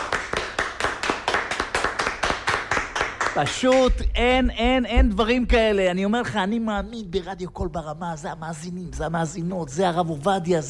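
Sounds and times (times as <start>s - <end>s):
audience clapping: 0.0s - 4.2s
speech: 3.4s - 10.6s.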